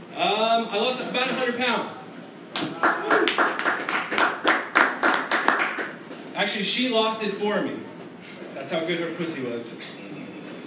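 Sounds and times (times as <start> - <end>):
speech: 0.2 - 2.0, 6.4 - 7.9, 8.7 - 10.0
small audience clapping: 2.5 - 6.0.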